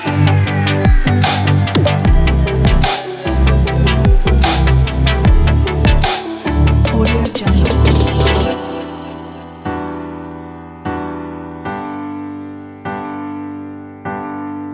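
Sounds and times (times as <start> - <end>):
future bass music: 0.0 - 10.2.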